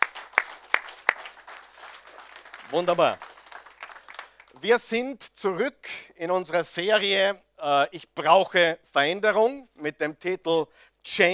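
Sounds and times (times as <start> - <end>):
audience applause: 0.0 - 4.7
speech: 2.7 - 3.3, 4.6 - 11.3.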